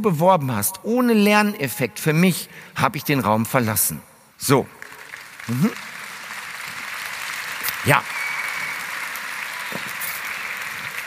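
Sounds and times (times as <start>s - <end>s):
speech: 0.0s - 4.8s, 5.5s - 5.9s, 7.8s - 8.2s
audience clapping: 4.5s - 11.0s.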